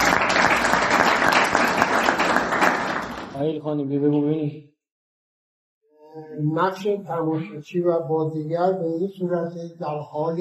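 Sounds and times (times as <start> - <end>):
audience applause: 0.0 - 3.4
speech: 3.5 - 4.7, 6.2 - 10.3.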